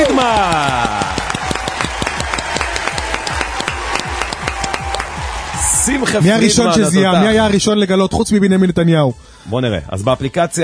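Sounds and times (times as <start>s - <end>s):
studio audience applause: 0.0s - 7.4s
speech: 5.9s - 10.6s.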